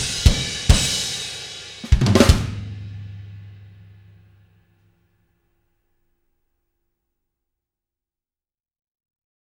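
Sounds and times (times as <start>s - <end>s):
drums playing: 0.0s - 4.4s.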